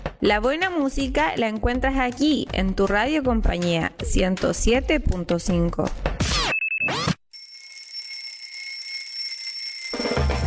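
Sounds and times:
speech: 0.2s - 6.1s
alarm clock ringing: 7.3s - 10.4s.

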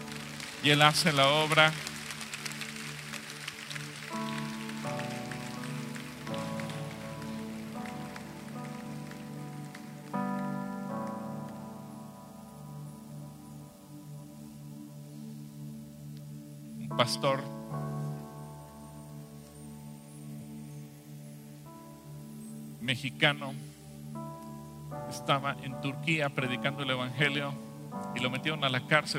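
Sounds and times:
audience applauding: 0.0s - 11.6s
sustained keyboard chords: 0.0s - 29.1s
speech: 0.6s - 1.9s, 17.0s - 17.5s, 22.9s - 23.8s, 25.1s - 29.1s.

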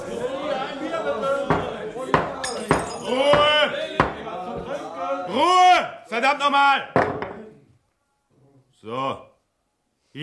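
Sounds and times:
murmur of voices in a bar: 0.0s - 6.1s
judge's hammer knocking on a wooden bar counter: 1.5s - 4.2s
speech: 6.2s - 7.0s, 8.8s - 9.3s.

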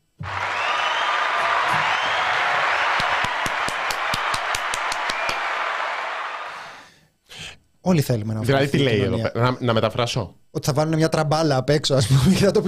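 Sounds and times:
individual sharp claps: 0.2s - 6.6s
audience applause: 0.2s - 6.8s
speech: 7.9s - 12.6s.

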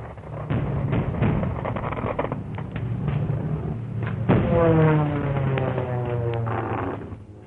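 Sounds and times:
air raid explosive thumps: 0.0s - 7.2s
air raid wailing tone: 4.4s - 7.4s.

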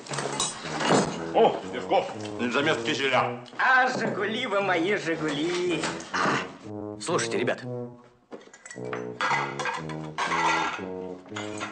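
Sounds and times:
dinner dishes clattering as they are shoved to the edge of a table: 0.0s - 1.2s, 8.3s - 11.6s
glass beer bottles clinking as they are set on a table: 0.0s - 1.2s, 8.4s - 11.6s
speech: 1.4s - 11.6s.

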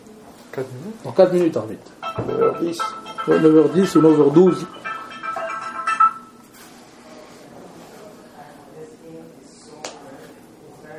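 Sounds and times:
speech: 0.6s - 4.8s
musical phone ringtone: 2.0s - 6.6s.

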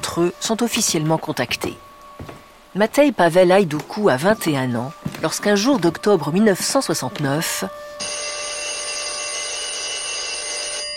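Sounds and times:
speech: 0.2s - 8.2s
telephone ringing with a shrill metallic bell tone: 8.0s - 10.9s.

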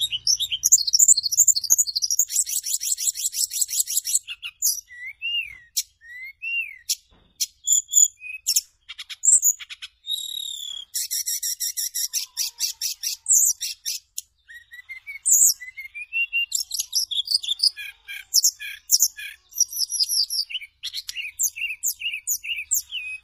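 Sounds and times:
bird song medley of chirps, trills and whistles: 0.0s - 23.2s.

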